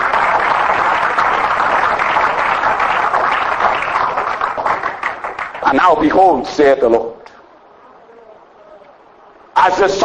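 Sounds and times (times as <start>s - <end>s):
audience hand clapping: 0.0s - 5.8s
speech: 5.7s - 7.2s, 9.6s - 10.0s.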